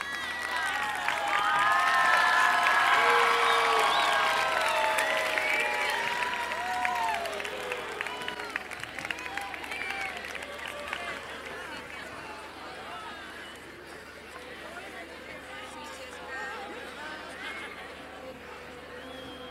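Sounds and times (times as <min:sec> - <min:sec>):
audience applauding: 0:00.0 - 0:12.4.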